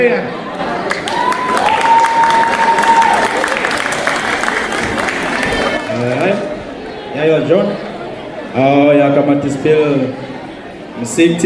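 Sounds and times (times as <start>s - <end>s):
speech: 0.0s - 1.2s, 7.2s - 7.8s, 8.5s - 10.2s, 11.0s - 11.4s
audience clapping at a live music gathering: 0.8s - 6.6s.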